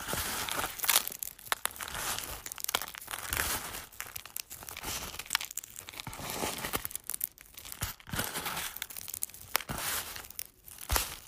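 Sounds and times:
eggshells crunched and crushed: 0.0 - 11.2.

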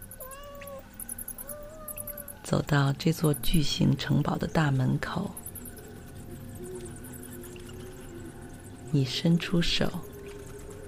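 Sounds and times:
low hiss: 0.0 - 10.8
black cat meowing softly: 0.2 - 2.4
speech: 2.5 - 5.4, 8.9 - 10.1.

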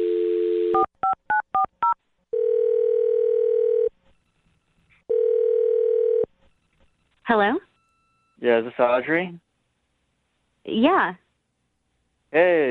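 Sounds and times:
dial tone: 0.0 - 0.9, 2.3 - 4.0, 5.1 - 6.3
speech: 7.3 - 7.6, 8.4 - 9.4, 10.6 - 11.2, 12.3 - 12.6.

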